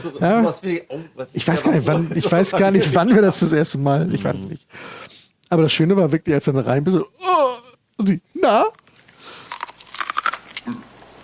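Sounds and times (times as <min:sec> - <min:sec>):
speech: 0:00.0 - 0:08.8
person crunching on raw field corn: 0:08.7 - 0:11.2.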